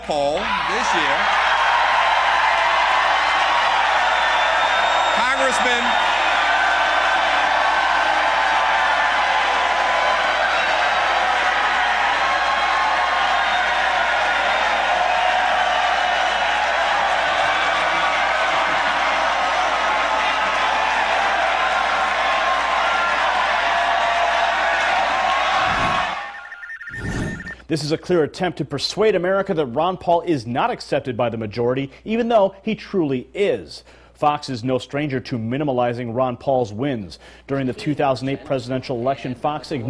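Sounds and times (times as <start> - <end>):
excited crowd cheering at the 2011 straw poll: 0.0 - 27.6
speech: 0.1 - 1.4, 5.4 - 6.2, 27.7 - 39.8.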